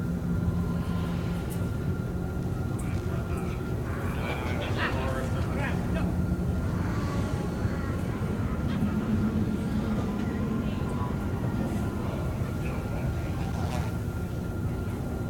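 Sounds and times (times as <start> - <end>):
market ambience: 0.0 - 15.2.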